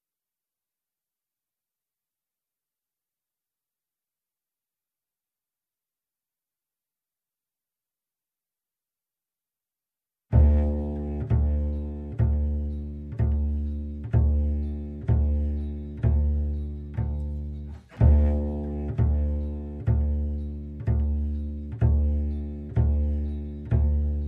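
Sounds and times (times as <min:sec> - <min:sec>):
upright bass: 0:10.3 - 0:24.2.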